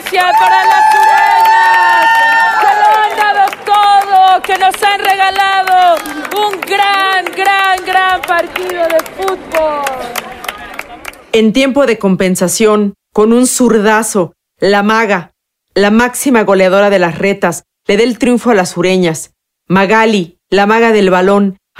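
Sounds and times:
crowd cheering and shouting: 0:00.0 - 0:04.5, 0:05.5 - 0:11.0
scattered clapping: 0:00.0 - 0:11.3
speech: 0:00.1 - 0:00.8, 0:11.4 - 0:21.7.

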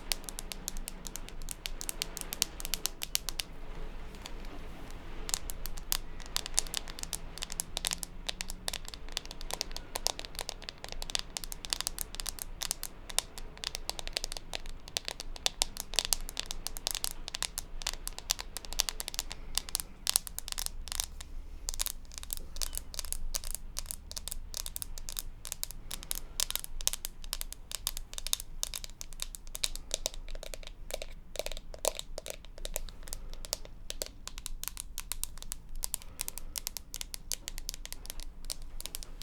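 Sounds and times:
tapping: 0:00.0 - 0:39.1.

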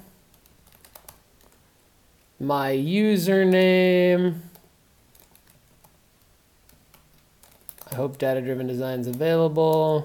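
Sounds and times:
computer keyboard typing an email: 0:00.3 - 0:01.6, 0:04.5 - 0:06.0, 0:06.6 - 0:08.3
speech: 0:02.4 - 0:04.5, 0:08.0 - 0:10.0.

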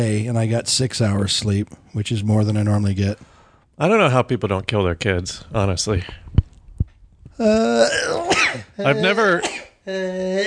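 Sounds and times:
speech: 0:00.0 - 0:06.3, 0:07.4 - 0:10.4
sneeze: 0:08.1 - 0:08.7.

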